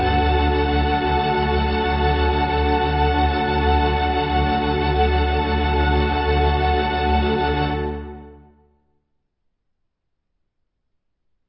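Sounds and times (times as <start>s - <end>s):
strings: 0.0s - 8.6s
violin: 0.0s - 8.6s.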